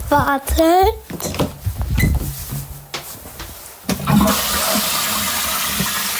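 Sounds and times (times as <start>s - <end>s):
speech: 0.1s - 1.5s
toilet flushing: 3.9s - 6.1s.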